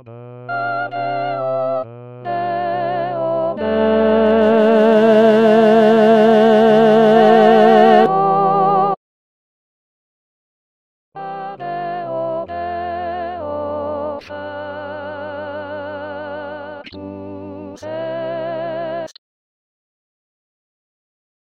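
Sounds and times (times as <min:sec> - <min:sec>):
soprano singing: 0:00.5 - 0:09.0, 0:11.2 - 0:19.1.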